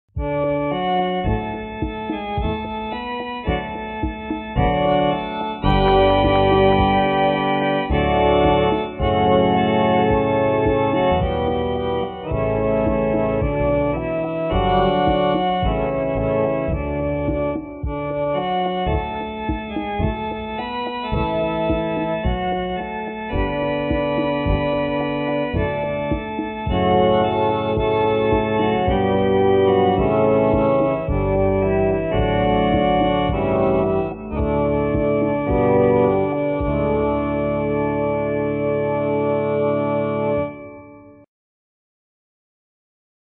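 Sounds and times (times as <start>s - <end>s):
solo music: 0.2s - 41.2s.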